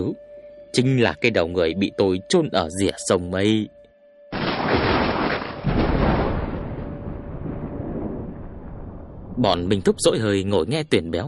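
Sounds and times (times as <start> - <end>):
speech: 0.0 - 3.8, 9.4 - 11.2
thunder cracking and rumbling outside: 4.4 - 10.6.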